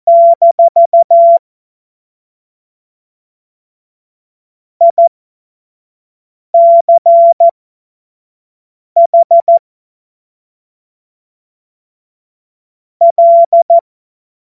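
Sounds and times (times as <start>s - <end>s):
Morse code course tones: 0.1s - 1.4s, 6.6s - 7.5s, 9.0s - 9.6s, 13.0s - 13.8s.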